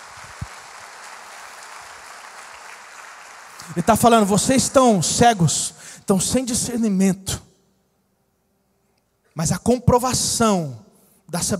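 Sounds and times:
audience applause: 0:00.0 - 0:05.1
speech: 0:03.7 - 0:07.4, 0:09.4 - 0:11.5.

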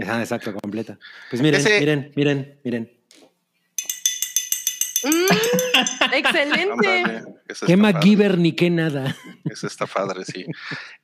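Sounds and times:
speech: 0:00.0 - 0:03.2, 0:05.0 - 0:11.0
metal objects clinking as makeshift bell: 0:03.8 - 0:06.4
laughter: 0:05.1 - 0:08.2, 0:09.0 - 0:11.0.

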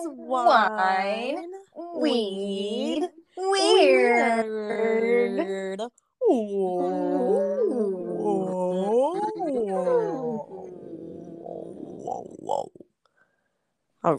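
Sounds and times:
speech: 0:00.0 - 0:07.0
person imitating whale song: 0:00.0 - 0:12.8.

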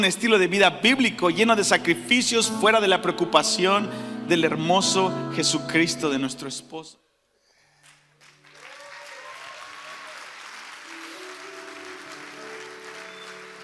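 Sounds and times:
speech: 0:00.0 - 0:07.0
church audience applause: 0:07.8 - 0:13.6.

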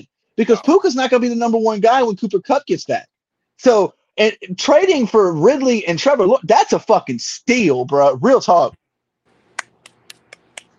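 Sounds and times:
speech: 0:00.4 - 0:08.8
finger snaps: 0:09.5 - 0:10.7.

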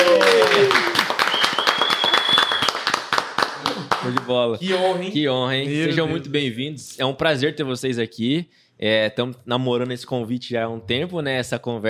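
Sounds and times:
people applauding two podcast guests: 0:00.0 - 0:04.4
speech: 0:04.3 - 0:11.8.

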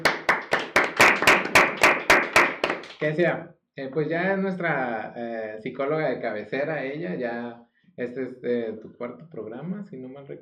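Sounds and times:
audience clapping: 0:00.0 - 0:03.2
speech: 0:03.0 - 0:10.4.

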